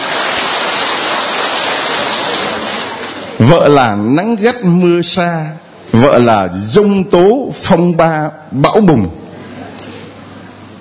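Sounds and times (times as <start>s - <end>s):
audience applause: 0.0s - 3.4s
speech: 3.4s - 9.2s.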